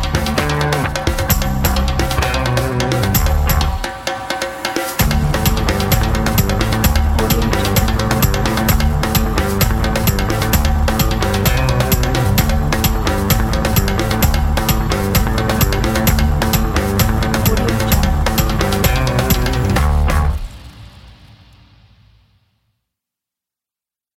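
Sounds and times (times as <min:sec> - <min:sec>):
bass: 0:00.0 - 0:03.8, 0:05.0 - 0:20.6
energetic percussion: 0:00.0 - 0:20.7.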